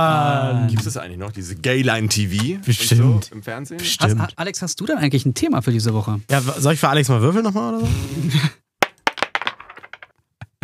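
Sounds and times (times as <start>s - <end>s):
speech: 0.0s - 8.6s
coin bouncing on a hard tabletop: 8.8s - 10.1s.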